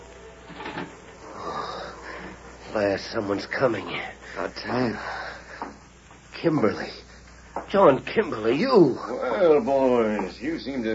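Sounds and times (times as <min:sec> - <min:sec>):
room door creaking slowly open: 0:00.4 - 0:01.4
speech: 0:02.8 - 0:05.2, 0:06.4 - 0:07.0, 0:07.7 - 0:10.9.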